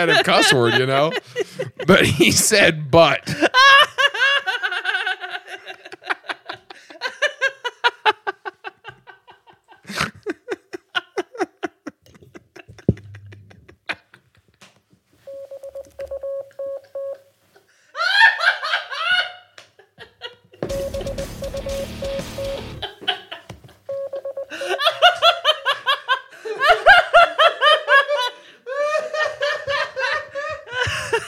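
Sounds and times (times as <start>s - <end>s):
speech: 0.0s - 3.8s
group laughter and giggling: 0.0s - 14.6s, 17.6s - 21.3s, 22.3s - 23.7s, 24.5s - 31.2s
Morse code beeps spelling a word: 15.3s - 17.2s, 20.6s - 22.8s, 23.9s - 24.5s.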